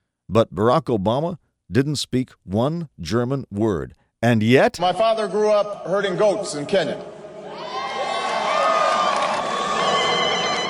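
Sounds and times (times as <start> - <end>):
speech: 0.3 - 7.1
large crowd cheering and shouting: 7.2 - 10.6.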